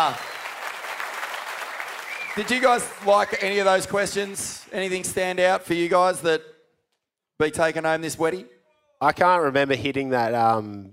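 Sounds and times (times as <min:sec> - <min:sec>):
speech: 0:00.0 - 0:00.3, 0:02.4 - 0:06.5, 0:07.4 - 0:10.9
audience clapping: 0:00.0 - 0:05.7.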